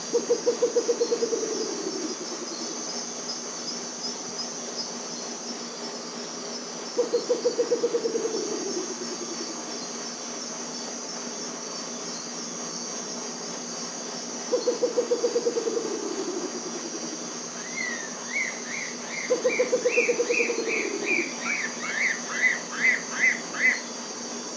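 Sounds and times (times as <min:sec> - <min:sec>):
Bare legged owl calling: 0:00.1 - 0:02.7, 0:07.0 - 0:09.5, 0:14.5 - 0:23.9.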